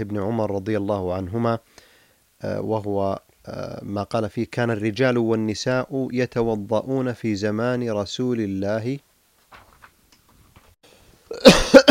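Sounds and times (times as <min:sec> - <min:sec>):
speech: 0:00.0 - 0:09.1
person coughing during a religious question-and-answer lesson: 0:11.3 - 0:11.8.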